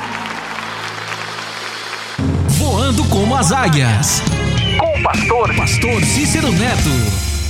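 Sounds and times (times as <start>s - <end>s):
church congregation clapping during a live religious service: 0.0s - 2.5s
speech: 2.9s - 7.3s.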